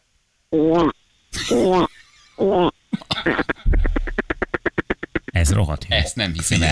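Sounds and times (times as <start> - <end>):
speech: 0.5 - 0.9, 1.5 - 1.9, 5.5 - 6.6
voice imitating a frog croak: 0.5 - 5.4.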